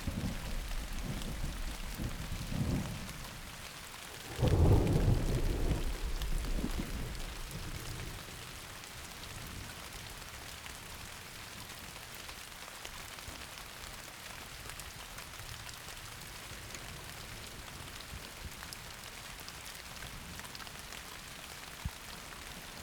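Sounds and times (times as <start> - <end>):
thunderstorm: 0.0 - 8.6.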